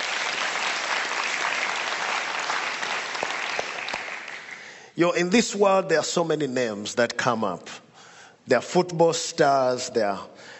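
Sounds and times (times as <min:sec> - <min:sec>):
audience clapping: 0:00.0 - 0:04.8
speech: 0:05.0 - 0:07.8, 0:08.5 - 0:10.5.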